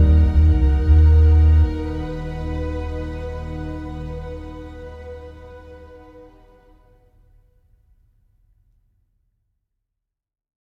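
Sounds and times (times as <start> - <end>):
original score music: 0.0 - 6.8.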